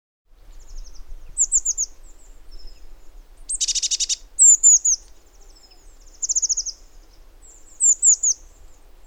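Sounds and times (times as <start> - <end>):
Eurasian blue tit Cyanistes caeruleus calling: 0.7 - 2.8, 3.5 - 6.8, 7.4 - 8.6.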